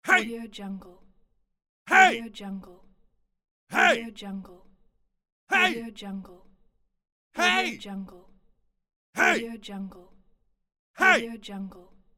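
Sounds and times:
vocal shouts: 0:00.0 - 0:00.3, 0:01.9 - 0:02.2, 0:03.7 - 0:04.1, 0:05.5 - 0:05.8, 0:07.4 - 0:07.8, 0:09.2 - 0:09.5, 0:11.0 - 0:11.3.

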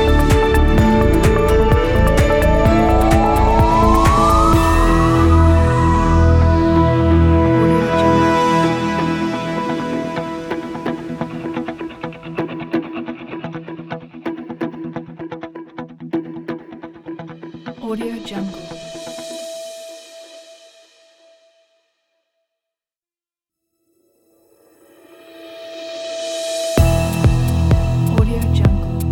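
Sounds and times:
upbeat ambient music: 0:00.0 - 0:20.4, 0:26.7 - 0:29.1.

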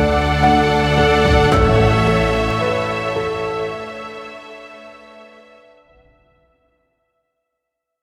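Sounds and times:
emotional inspiring piano music: 0:00.0 - 0:06.4.

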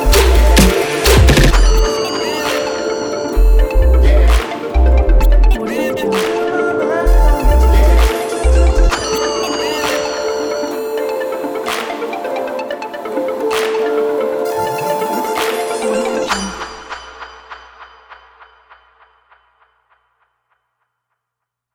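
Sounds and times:
hip hop lounge music: 0:00.0 - 0:16.9.

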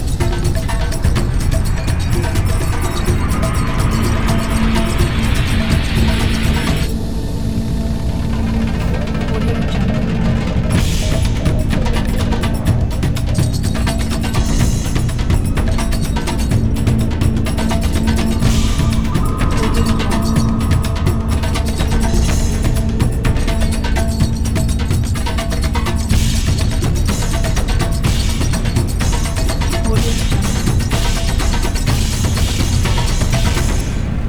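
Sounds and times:
dark suspense mystery trailer music: 0:00.0 - 0:34.2.

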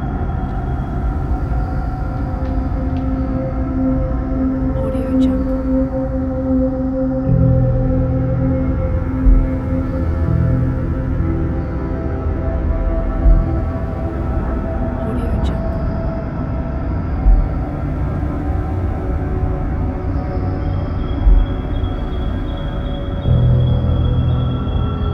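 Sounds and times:
dark forest ambience: 0:00.0 - 0:25.1.

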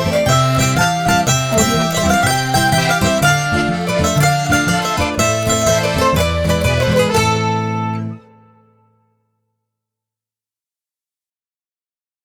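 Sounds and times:
mandolin music: 0:00.0 - 0:09.0.

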